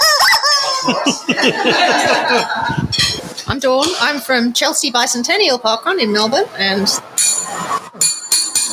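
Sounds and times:
laughter: 0.0s - 8.0s
speech: 0.8s - 8.1s
flat bell ringing: 7.2s - 8.7s.

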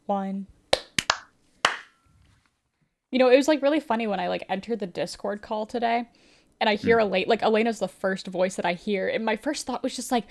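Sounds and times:
speech: 0.1s - 0.6s, 3.1s - 10.2s
sharp hand claps for audio sync: 0.7s - 2.0s.

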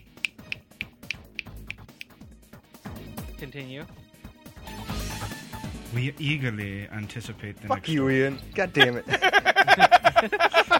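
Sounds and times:
finger snap: 0.0s - 2.2s
speech: 3.4s - 4.0s, 5.9s - 10.7s
laughter: 8.7s - 10.7s.

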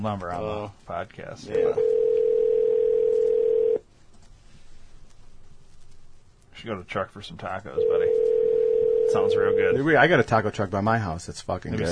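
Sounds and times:
speech: 0.0s - 2.0s, 6.6s - 8.3s, 9.1s - 11.8s
faint low noise: 0.0s - 11.8s
telephone dial tone: 1.8s - 3.8s, 7.8s - 9.7s.

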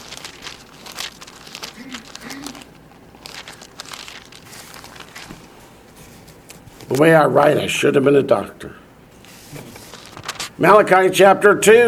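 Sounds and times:
thin Bible pages flipped back: 0.0s - 7.5s, 9.2s - 10.6s
speech: 6.9s - 8.8s, 10.6s - 11.8s.

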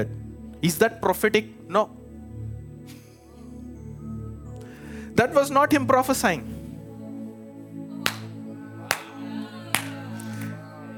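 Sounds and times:
speech: 0.0s - 2.0s, 5.2s - 6.6s
hands clapping: 8.0s - 10.6s.

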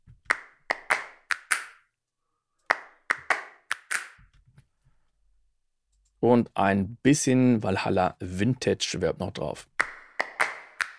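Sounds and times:
dry finger snaps sample in a music production: 0.3s - 1.8s, 2.7s - 4.2s, 9.8s - 10.9s
speech: 6.2s - 9.7s.

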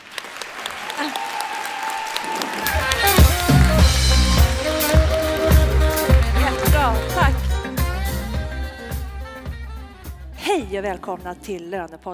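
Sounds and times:
live audience clapping: 0.0s - 9.0s
cheering voices: 0.6s - 7.5s
speech: 10.7s - 12.1s.

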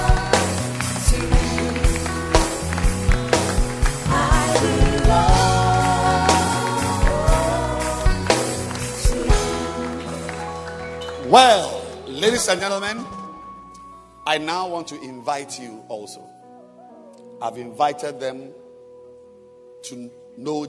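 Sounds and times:
audience clapping: 0.0s - 13.0s
speech: 11.3s - 13.2s, 14.3s - 16.4s, 17.4s - 18.6s, 19.8s - 20.6s.

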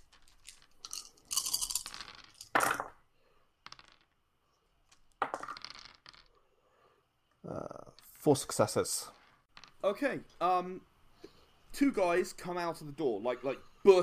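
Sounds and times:
dice clattering on a hard surface: 0.0s - 3.0s, 3.6s - 4.2s, 4.8s - 6.4s, 9.0s - 10.0s
speech: 7.5s - 9.2s, 9.8s - 10.9s, 11.8s - 14.0s.

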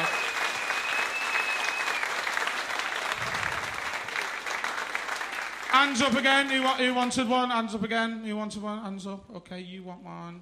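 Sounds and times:
audience applause: 0.0s - 7.1s
speech: 5.7s - 10.3s.

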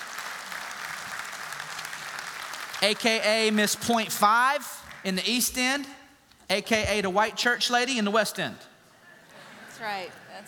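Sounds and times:
audience applauding to welcome a speaker onto the stage: 0.0s - 5.4s
speech: 2.8s - 8.7s, 9.8s - 10.4s.

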